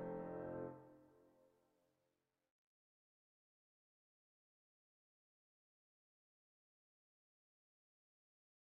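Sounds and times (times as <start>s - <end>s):
andante espressivo music piece: 0.0s - 0.8s.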